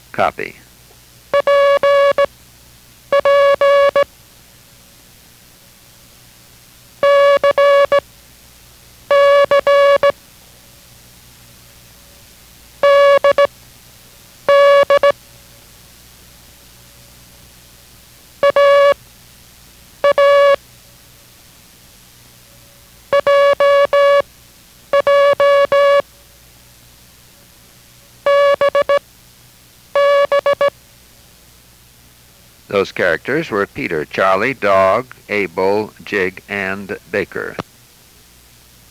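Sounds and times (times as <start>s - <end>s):
speech: 0.2s - 0.6s, 32.7s - 37.6s
mid-pitched Morse code tone sending repeated characters: 1.4s - 2.3s, 3.1s - 4.1s, 7.0s - 8.0s, 9.1s - 10.1s, 12.8s - 13.5s, 14.5s - 15.1s, 18.4s - 19.0s, 20.0s - 20.6s, 23.1s - 24.2s, 24.9s - 26.0s, 28.3s - 29.0s, 30.0s - 30.7s.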